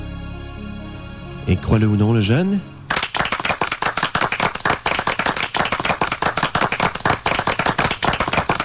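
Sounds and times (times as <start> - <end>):
speech: 1.5 - 2.7
applause: 2.9 - 8.6.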